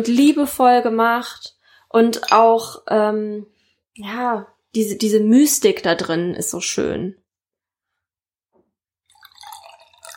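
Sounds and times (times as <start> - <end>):
speech: 0.0 - 7.2
last of a day-old bottle of beer dripping and pouring: 9.1 - 10.1.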